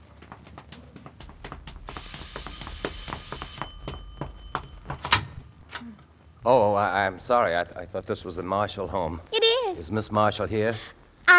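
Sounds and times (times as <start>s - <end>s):
hurried footsteps: 0.0s - 5.7s
doorbell ringing: 2.0s - 5.5s
speech: 6.4s - 11.0s.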